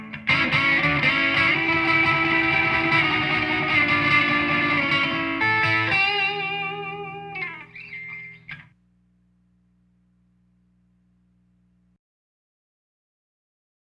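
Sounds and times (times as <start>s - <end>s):
Telecaster electric guitar playing blues with light grind on neck pickup: 0.0s - 8.7s.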